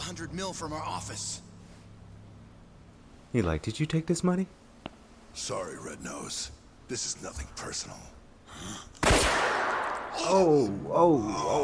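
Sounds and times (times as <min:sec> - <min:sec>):
speech: 0:00.1 - 0:01.5, 0:03.3 - 0:04.6, 0:05.4 - 0:08.9, 0:10.2 - 0:11.6
single sharp gunshot: 0:09.0 - 0:10.2.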